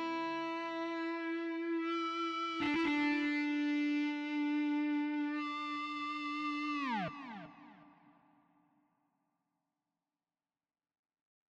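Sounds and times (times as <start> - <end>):
guitars: 0.0 - 8.2.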